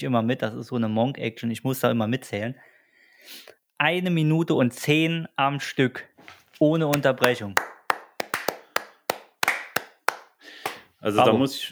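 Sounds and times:
speech: 0:00.0 - 0:07.7, 0:11.0 - 0:11.7
one person clapping hands: 0:06.9 - 0:10.9.

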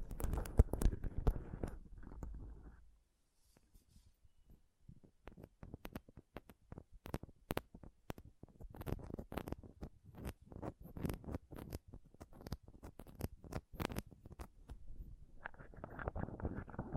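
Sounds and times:
rough rubbing on a microphone: 0:00.0 - 0:02.8, 0:08.4 - 0:16.9
scratches and taps on a microphone: 0:00.0 - 0:02.8, 0:04.5 - 0:16.9.

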